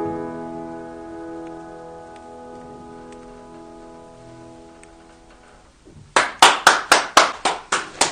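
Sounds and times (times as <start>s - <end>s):
warm audience applause: 6.1s - 8.1s.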